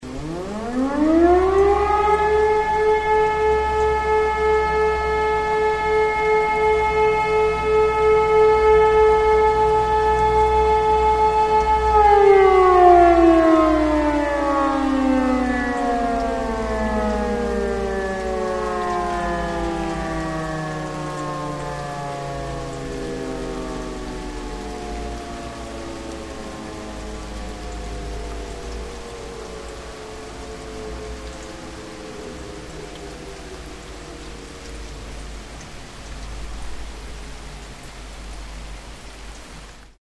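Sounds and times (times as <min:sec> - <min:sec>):
siren: 0:00.0 - 0:39.9.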